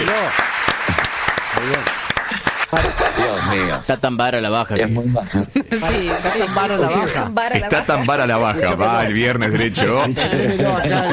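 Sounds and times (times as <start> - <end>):
few people clapping: 0.0 - 3.5
speech: 1.6 - 2.0, 2.7 - 11.1
voices laughing and calling out: 5.7 - 11.1.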